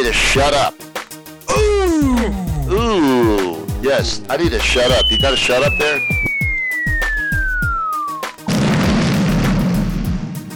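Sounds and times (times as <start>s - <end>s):
speech: 0.0s - 0.9s, 2.3s - 6.1s
rhythmic thumping beat: 0.0s - 10.5s
bomb falling whistle sound effect: 4.8s - 8.5s
bomb explosion boom with rumbling roar: 8.5s - 10.4s.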